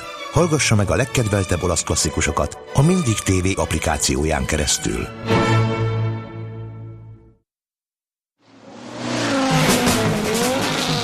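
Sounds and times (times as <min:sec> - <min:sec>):
speech: 0:00.4 - 0:05.8
rally race car engine: 0:08.5 - 0:11.0
rally race car tires squealing: 0:08.7 - 0:11.0.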